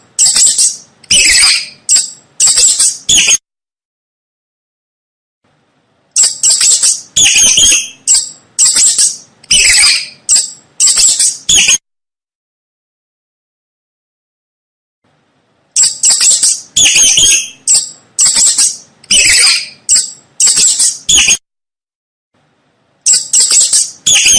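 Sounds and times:
mouse squeaking: 0:00.2 - 0:03.4, 0:06.1 - 0:11.8, 0:15.7 - 0:21.4, 0:23.0 - 0:24.3.

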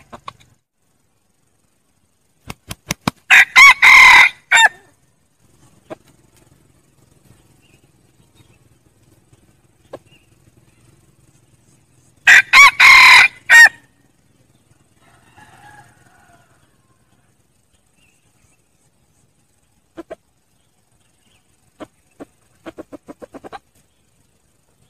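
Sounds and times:
red junglefowl crowing: 0:03.3 - 0:04.9, 0:12.2 - 0:13.9, 0:14.9 - 0:17.2.

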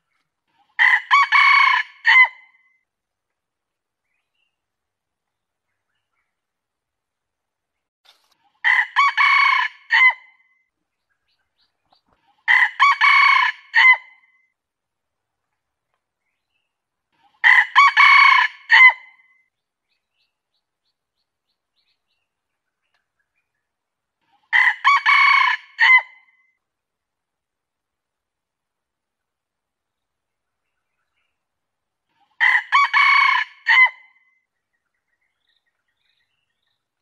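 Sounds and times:
junglefowl crowing: 0:00.8 - 0:02.4, 0:08.6 - 0:10.2, 0:12.5 - 0:14.1, 0:17.4 - 0:19.1, 0:24.5 - 0:26.1, 0:32.4 - 0:34.0.

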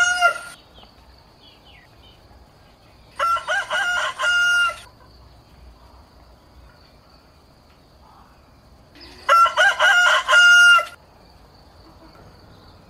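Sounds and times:
rooster crowing: 0:00.0 - 0:00.6, 0:03.2 - 0:04.9, 0:09.1 - 0:11.0.

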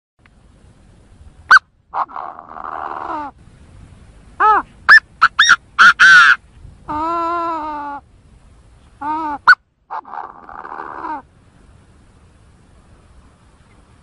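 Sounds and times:
Chinese francolin harsh calls: 0:01.5 - 0:03.4, 0:04.4 - 0:08.1, 0:08.8 - 0:11.3.

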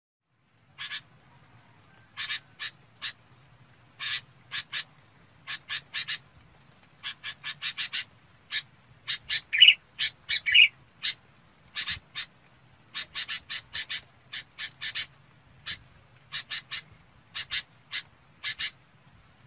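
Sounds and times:
Red-whiskered bulbul chattering: 0:00.8 - 0:01.1, 0:04.0 - 0:06.2, 0:07.0 - 0:12.3, 0:12.9 - 0:18.8.

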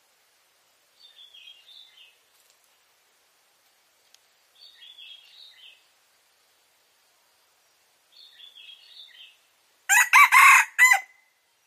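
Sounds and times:
red junglefowl crow: 0:09.9 - 0:11.2.

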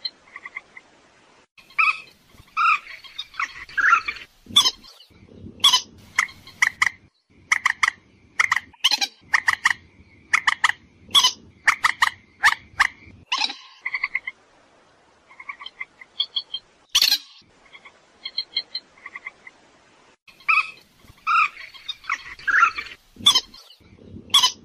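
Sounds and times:
purple swamphen screeching and clucking: 0:01.7 - 0:14.3, 0:20.3 - 0:24.6.

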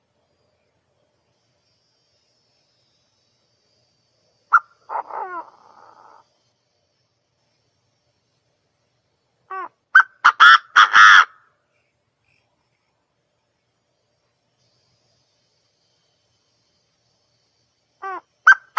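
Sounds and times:
partridge calling: 0:04.4 - 0:06.2, 0:09.5 - 0:12.5, 0:18.0 - 0:18.7.

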